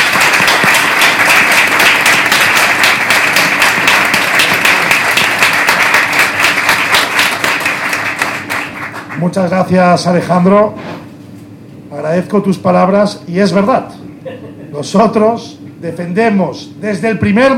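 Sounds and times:
loud applause: 0.0 - 9.2
speech: 9.2 - 10.8, 12.0 - 17.5.

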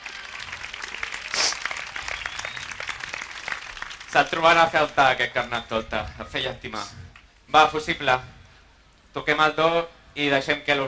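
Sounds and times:
applause: 0.0 - 5.7
speech: 4.1 - 8.4, 9.2 - 10.8.

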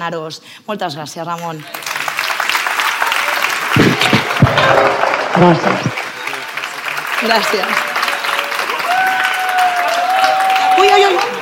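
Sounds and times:
speech: 0.0 - 1.9, 4.5 - 6.0, 7.2 - 7.9, 10.8 - 11.4
crowd clapping: 1.4 - 11.4.

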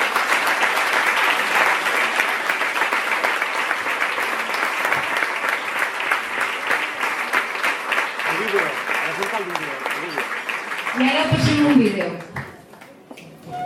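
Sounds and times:
audience applause: 0.0 - 13.0.

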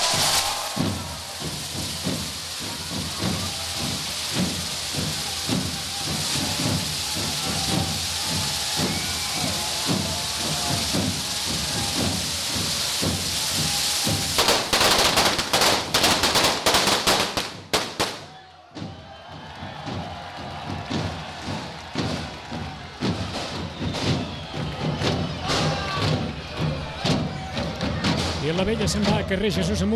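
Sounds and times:
long string of firecrackers going off: 0.0 - 18.4, 20.6 - 27.0
crowd noise: 0.0 - 29.9
speech: 28.8 - 29.9.

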